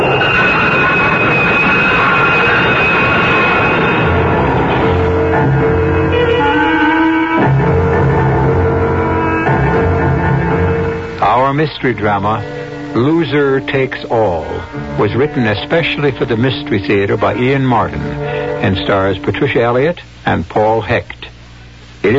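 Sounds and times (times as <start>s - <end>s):
onrushing train at a platform: 0.0s - 19.4s
shrill metallic screeching of train: 0.0s - 19.4s
speech: 11.6s - 21.2s.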